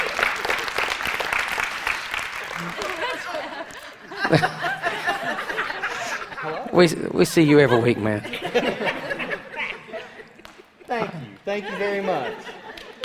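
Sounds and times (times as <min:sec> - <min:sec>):
audience clapping to welcome a guest speaker: 0:00.0 - 0:04.6, 0:10.2 - 0:13.0
speech: 0:02.6 - 0:04.8, 0:06.8 - 0:09.0, 0:10.9 - 0:12.5
people chuckling: 0:02.6 - 0:13.0.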